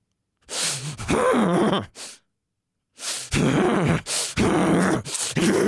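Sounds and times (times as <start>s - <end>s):
forced deep stressful huffing breaths: 0.5s - 1.2s, 3.0s - 5.5s.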